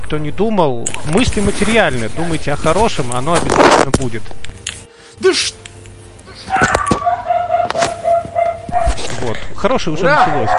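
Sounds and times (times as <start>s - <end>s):
speech: 0.1s - 4.5s, 5.2s - 5.6s, 9.2s - 10.5s
dog barking: 6.4s - 9.1s, 10.1s - 10.5s.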